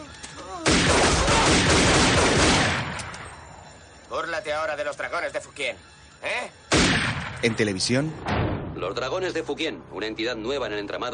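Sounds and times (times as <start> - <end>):
gunshots fired at a man: 0.6 - 3.3, 6.7 - 7.6, 8.2 - 8.9
speech: 4.3 - 6.7, 7.4 - 11.1.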